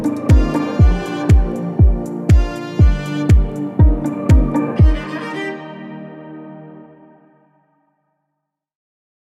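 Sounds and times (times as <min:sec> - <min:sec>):
telephone hold music: 0:00.0 - 0:07.2.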